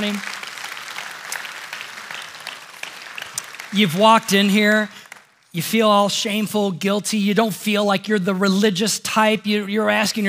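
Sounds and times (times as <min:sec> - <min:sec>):
speech: 0:00.0 - 0:00.3, 0:03.7 - 0:10.2
audience applause: 0:00.0 - 0:05.4.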